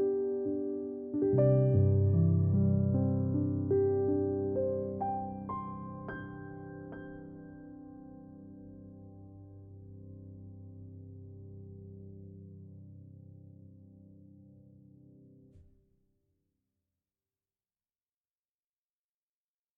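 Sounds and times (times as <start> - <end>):
calm nature song: 0.0 - 15.8.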